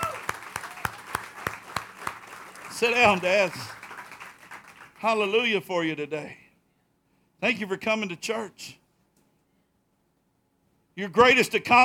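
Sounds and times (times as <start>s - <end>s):
church audience applauding: 0.0s - 5.3s
speech: 2.8s - 3.8s, 5.0s - 6.4s, 7.4s - 8.8s, 11.0s - 11.8s.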